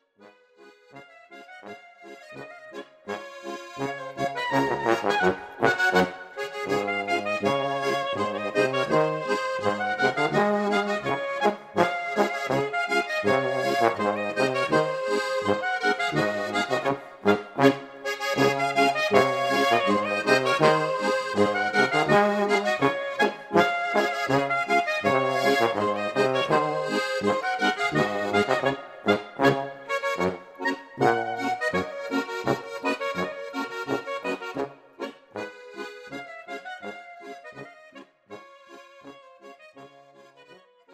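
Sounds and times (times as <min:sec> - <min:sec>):
Bavarian boarischer folk dance music: 0:01.8 - 0:40.9.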